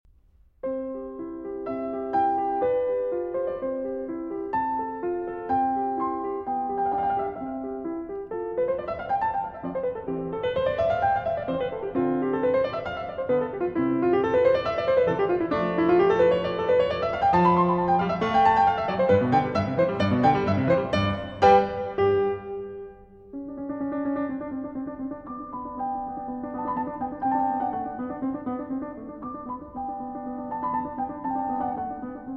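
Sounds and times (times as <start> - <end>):
piano sonata in C major, allegro: 0.2 - 32.3.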